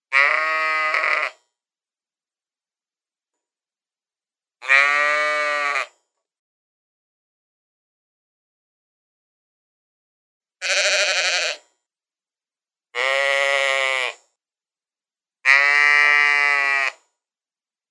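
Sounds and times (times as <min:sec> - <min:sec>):
sheep giving wavering bleats: 0:00.1 - 0:01.4, 0:04.6 - 0:05.9, 0:10.6 - 0:11.6, 0:13.0 - 0:14.2, 0:15.5 - 0:17.0.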